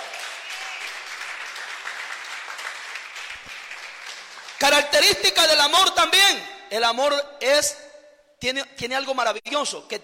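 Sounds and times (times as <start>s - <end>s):
crowd applause: 0.0s - 4.6s
speech: 4.6s - 7.8s, 8.4s - 10.0s.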